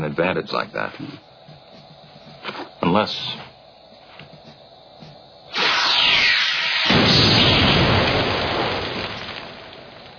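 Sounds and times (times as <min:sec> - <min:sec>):
speech: 0:00.0 - 0:01.3, 0:02.9 - 0:03.4
Star Trek hand phaser firing: 0:05.5 - 0:08.8.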